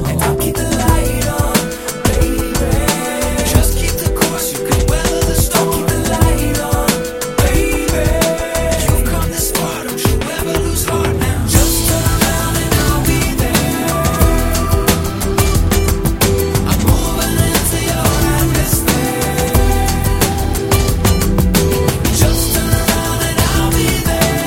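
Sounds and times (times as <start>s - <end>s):
ambient atmosphere: 0.1s - 24.4s.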